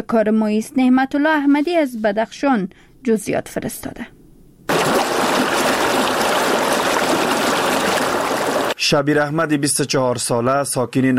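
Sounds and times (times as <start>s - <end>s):
speech: 0.1s - 4.2s, 8.9s - 11.1s
river rushing loudly: 4.7s - 8.8s.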